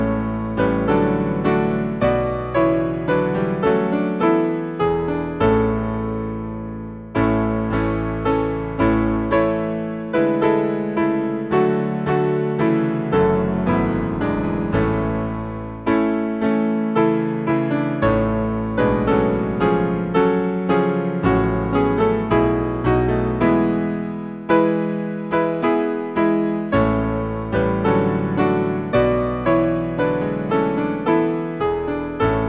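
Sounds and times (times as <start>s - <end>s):
piano playing a hymn: 0.0s - 32.4s.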